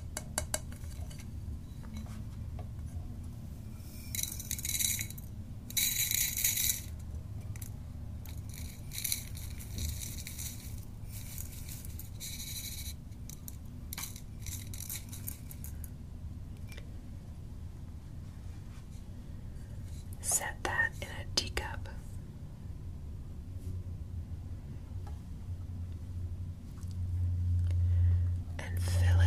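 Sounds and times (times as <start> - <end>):
low hum: 0.0 - 29.2
loose tea poured into a metal strainer: 3.8 - 15.9.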